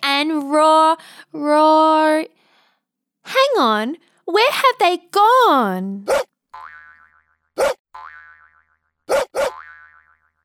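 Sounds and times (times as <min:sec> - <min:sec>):
speech: 0:00.3 - 0:02.4, 0:03.3 - 0:06.7
cartoonish springy boings: 0:06.1 - 0:10.4.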